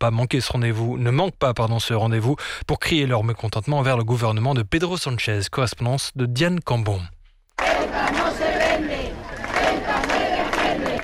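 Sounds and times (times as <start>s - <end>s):
speech: 0.0s - 7.8s
demonstrators chanting slogans: 7.6s - 11.0s.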